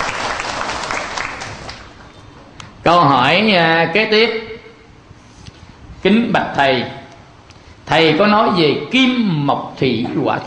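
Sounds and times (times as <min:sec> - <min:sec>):
audience clapping for a gift during a Buddhist talk: 0:00.0 - 0:02.1
speech: 0:02.8 - 0:04.5, 0:06.0 - 0:07.0, 0:07.9 - 0:10.4.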